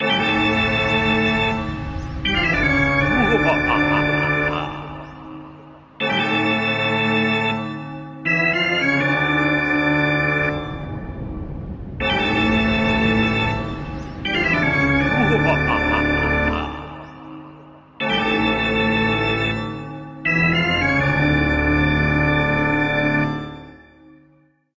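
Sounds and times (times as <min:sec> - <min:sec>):
spooky organ music: 0:00.0 - 0:24.3
laughter: 0:02.6 - 0:05.6, 0:15.0 - 0:17.4.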